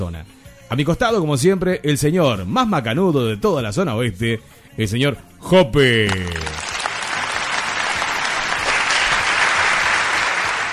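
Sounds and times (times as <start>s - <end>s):
speech: 0.0s - 6.6s
audience applause: 6.2s - 10.7s.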